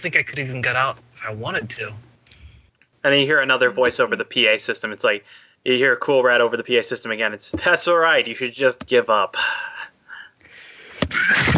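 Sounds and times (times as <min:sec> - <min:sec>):
speech: 0:00.0 - 0:02.1, 0:03.0 - 0:09.7, 0:11.1 - 0:11.5
person sneezing: 0:10.9 - 0:11.5.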